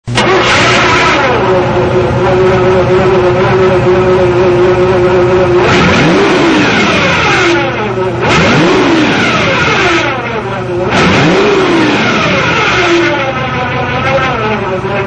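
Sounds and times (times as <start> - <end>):
Corvette engine: 0.0 - 15.0.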